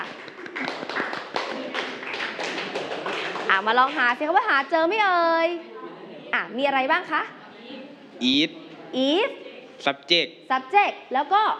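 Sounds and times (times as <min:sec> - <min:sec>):
classroom clapping for a student group: 0:00.0 - 0:04.4
speech: 0:03.6 - 0:05.7, 0:06.3 - 0:11.5.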